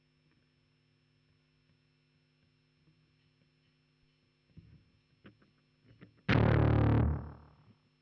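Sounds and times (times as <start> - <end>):
bass guitar recorded by direct input: 6.3 - 7.6.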